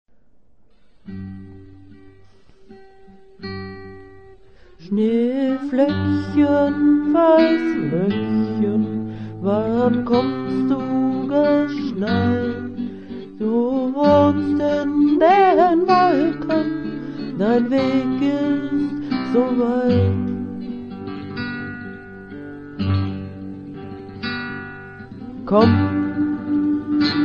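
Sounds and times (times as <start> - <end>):
person singing a children's Christmas song: 4.8 - 20.5, 25.2 - 27.2.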